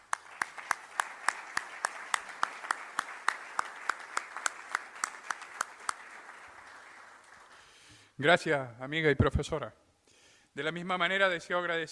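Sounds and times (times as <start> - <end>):
audience applause: 0.0 - 7.9
speech: 8.2 - 9.8, 10.6 - 11.9.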